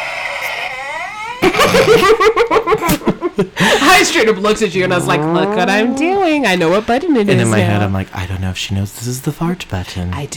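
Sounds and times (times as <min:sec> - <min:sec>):
laughter: 0:01.4 - 0:06.0, 0:07.3 - 0:07.9
speech: 0:01.7 - 0:10.3
fake audience sound effect: 0:04.6 - 0:06.6.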